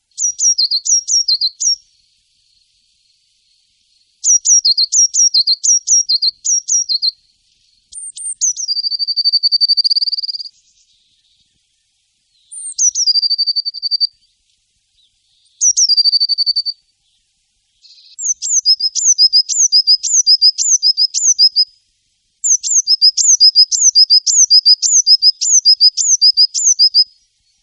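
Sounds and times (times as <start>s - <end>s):
Eurasian blue tit singing: 0.1s - 1.9s, 4.2s - 11.4s, 12.4s - 14.2s, 15.0s - 16.8s, 17.8s - 21.7s, 22.4s - 27.6s.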